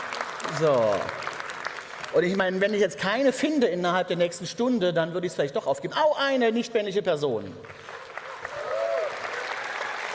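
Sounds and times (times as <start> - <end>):
audience applause after a panel discussion: 0.0 - 2.4, 7.6 - 10.1
speech: 0.5 - 1.3, 2.1 - 7.9.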